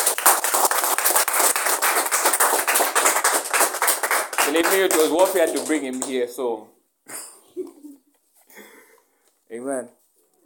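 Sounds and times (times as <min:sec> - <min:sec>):
audience clapping: 0:00.0 - 0:06.4
speech: 0:04.5 - 0:06.8, 0:09.5 - 0:10.0.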